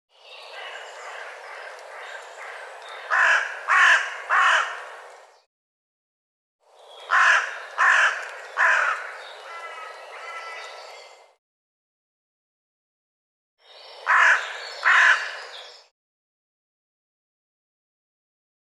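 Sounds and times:
bird harsh rasping calls: 0.4s - 4.8s, 7.0s - 11.1s, 14.0s - 15.5s.

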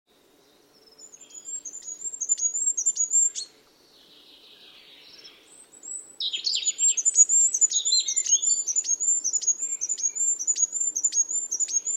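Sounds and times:
bird calling with thin high chirps and buzzy scratchy notes: 0.4s - 11.9s.

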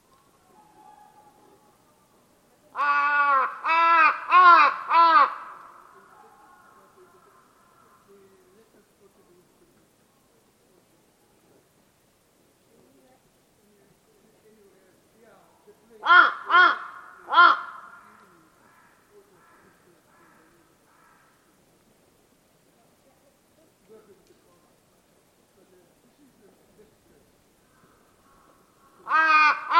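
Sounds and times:
bird giving harsh drawn-out caws: 2.8s - 8.1s, 16.0s - 21.6s, 27.6s - 29.7s.

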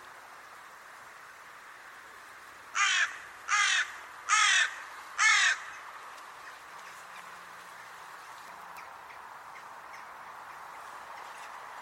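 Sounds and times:
bird giving harsh raspy caws: 2.7s - 5.8s.

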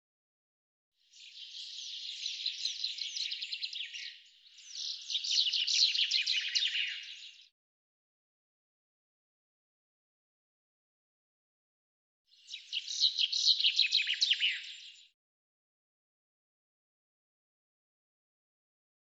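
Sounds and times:
bird chirping song: 1.0s - 7.5s, 12.3s - 15.2s.

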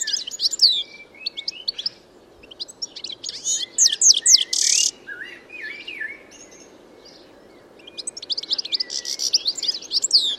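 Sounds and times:
bird chirps and trills: 0.0s - 7.2s, 7.8s - 10.3s.

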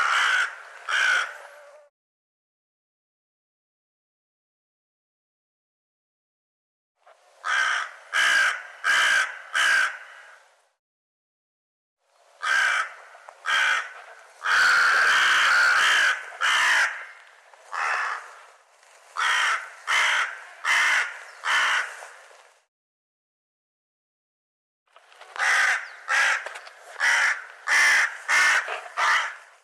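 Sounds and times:
bird cawing: 0.0s - 1.9s, 7.4s - 10.5s, 12.4s - 18.5s, 19.2s - 22.2s, 25.4s - 29.5s.

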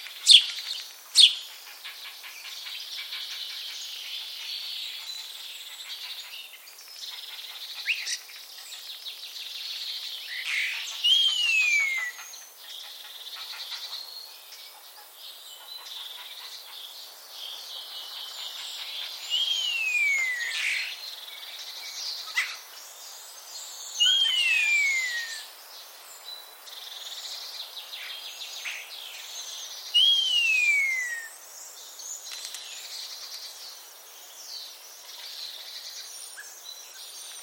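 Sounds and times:
hiss: 0.0s - 37.4s
common starling falling whistle: 24.2s - 25.4s.

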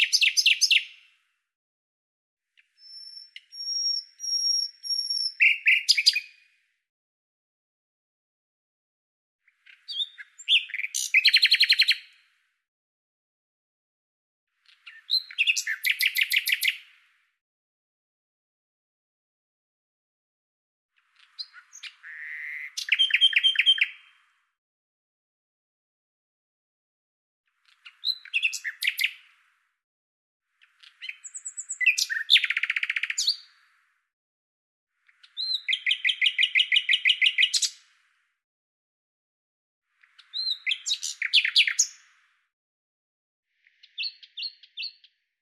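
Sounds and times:
common nightingale song: 0.0s - 1.2s, 2.6s - 6.6s, 9.4s - 12.4s, 14.6s - 17.1s, 21.0s - 24.4s, 27.5s - 29.6s, 30.5s - 33.8s, 35.0s - 38.1s, 39.9s - 42.3s, 43.6s - 45.4s.

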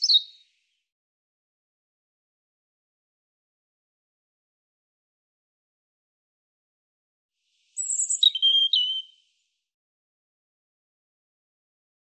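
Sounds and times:
European robin singing: 0.0s - 0.4s, 7.8s - 9.2s.

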